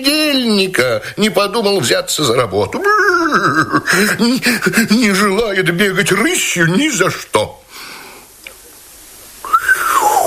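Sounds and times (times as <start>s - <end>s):
speech: 0.0s - 7.8s
laughter: 2.8s - 4.8s
whistle: 9.5s - 10.1s.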